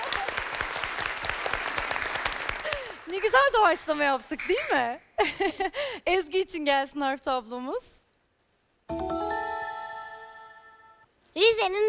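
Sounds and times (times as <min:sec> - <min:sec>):
group applause: 0:00.0 - 0:03.7
speech: 0:03.2 - 0:08.0, 0:11.4 - 0:11.8.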